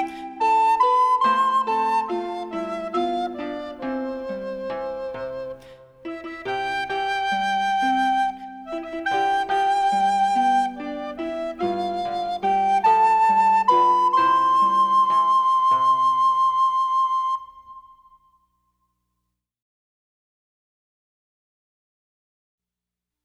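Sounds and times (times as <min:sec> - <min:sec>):
solo music: 0:00.0 - 0:18.2.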